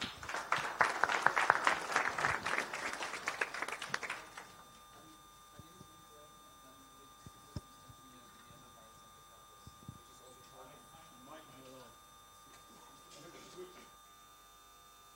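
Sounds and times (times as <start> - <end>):
conference audience applause: 0.0 - 4.6.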